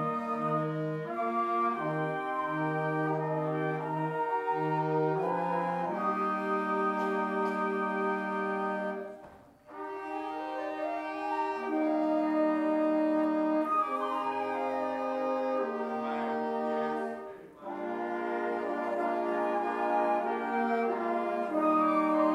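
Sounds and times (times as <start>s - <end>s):
instrumental hymn: 0.0s - 22.3s.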